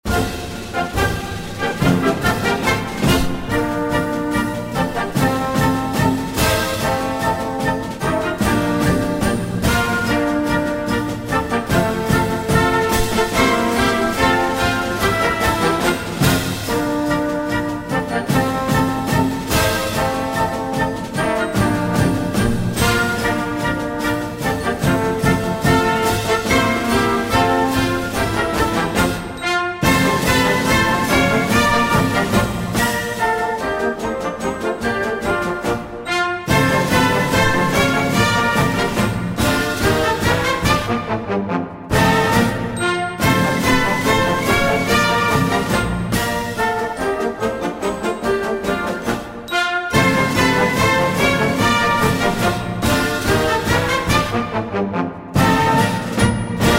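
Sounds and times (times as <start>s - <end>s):
vivo galop music: 0.0s - 56.7s.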